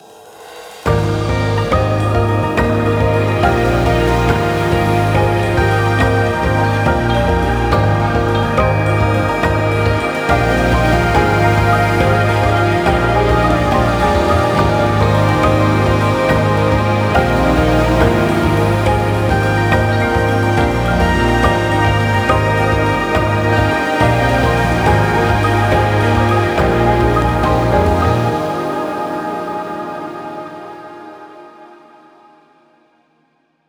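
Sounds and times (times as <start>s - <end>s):
song: 0.9s - 32.0s.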